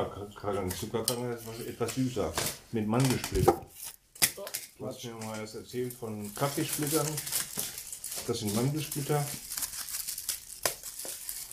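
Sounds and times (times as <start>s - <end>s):
speech: 0.0s - 3.7s, 4.8s - 7.4s, 8.3s - 9.5s
packaging crinkling near the microphone: 5.9s - 11.5s.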